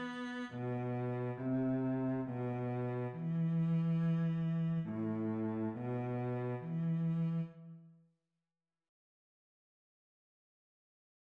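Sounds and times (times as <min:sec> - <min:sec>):
cello: 0:00.0 - 0:07.9.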